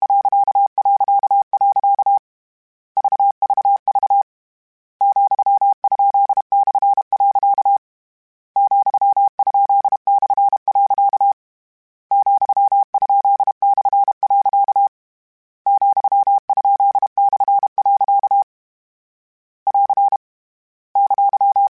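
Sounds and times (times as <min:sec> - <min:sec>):
Morse code CW code groups: 0:00.0 - 0:02.2, 0:03.0 - 0:04.2, 0:05.0 - 0:07.8, 0:08.6 - 0:11.4, 0:12.1 - 0:14.9, 0:15.7 - 0:18.5, 0:19.7 - 0:20.2, 0:21.0 - 0:21.7.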